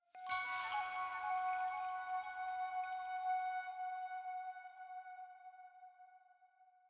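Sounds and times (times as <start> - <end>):
chime in F sharp: 0.2 - 4.3
item flute jingle: 0.2 - 4.8.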